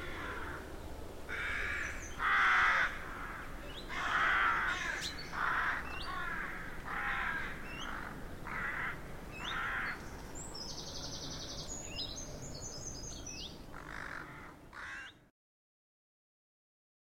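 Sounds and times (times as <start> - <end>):
rookery of rooks cawing in a derelict abbey: 0.0 - 0.7, 1.3 - 10.0, 13.7 - 15.3.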